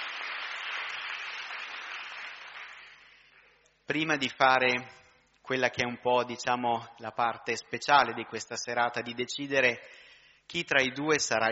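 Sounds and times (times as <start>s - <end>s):
audience applause: 0.0s - 3.4s
speech: 3.9s - 11.5s.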